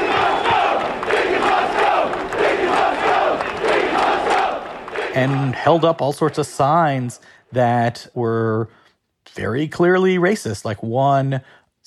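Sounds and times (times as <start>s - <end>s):
large crowd of rioting police shouting and roaring: 0.0s - 5.8s
speech: 5.2s - 11.8s.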